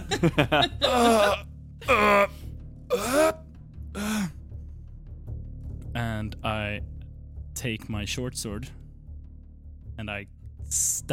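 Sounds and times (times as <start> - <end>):
laughter: 0.0 - 1.4
speech: 0.2 - 3.4, 6.2 - 6.9, 7.6 - 8.8, 10.0 - 11.1
voice imitating an old man groaning while standing up: 0.7 - 3.4.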